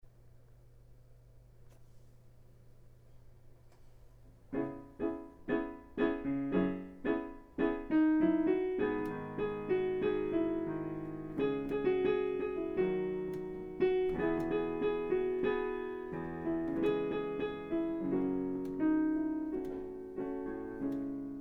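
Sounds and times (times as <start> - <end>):
instrumental music without vocals: 4.5 - 21.3.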